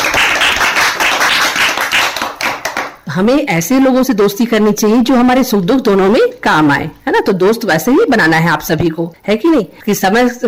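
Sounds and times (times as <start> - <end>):
crowd clapping: 0.0 - 3.0
speech: 3.2 - 10.4.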